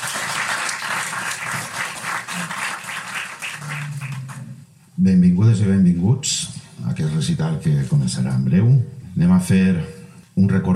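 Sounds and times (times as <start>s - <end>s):
crowd applause: 0.0s - 4.5s
faint low hum: 0.0s - 10.7s
speech: 5.0s - 10.7s.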